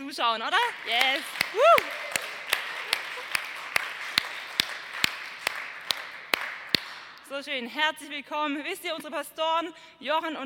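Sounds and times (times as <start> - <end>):
speech: 0.1 - 2.0, 7.3 - 10.4
rhythmic clapping: 0.4 - 7.4.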